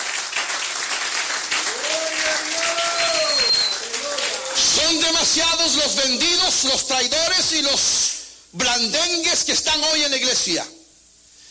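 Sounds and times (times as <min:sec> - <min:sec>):
audience clapping: 0:00.0 - 0:05.5
speech: 0:05.0 - 0:10.8.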